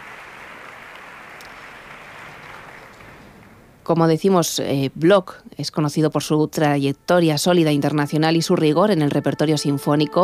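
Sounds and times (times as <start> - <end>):
concert hall audience applause: 0.0 - 3.6
speech: 3.9 - 10.2.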